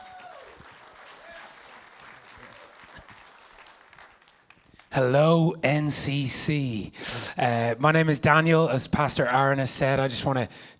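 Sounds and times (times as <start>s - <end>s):
audience applause welcoming a guest speaker: 0.0s - 4.9s
speech: 4.9s - 10.7s.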